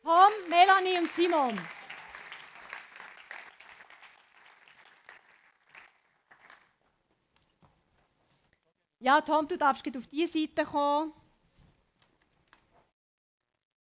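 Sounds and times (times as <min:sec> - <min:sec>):
audience applause: 0:00.0 - 0:06.8
speech: 0:01.1 - 0:01.8, 0:09.0 - 0:11.2.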